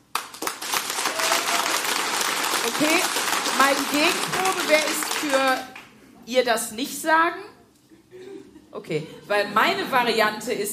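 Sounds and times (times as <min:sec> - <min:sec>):
audience clapping: 0:00.0 - 0:05.9
speech: 0:02.7 - 0:05.7, 0:06.3 - 0:07.5, 0:08.1 - 0:10.7.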